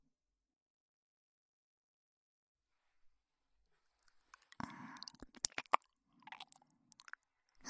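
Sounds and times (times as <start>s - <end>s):
ear licking: 4.1s - 7.2s.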